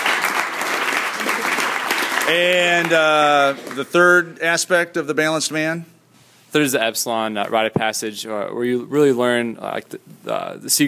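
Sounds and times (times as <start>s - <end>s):
audience applause: 0.0s - 3.9s
speech: 2.3s - 10.8s.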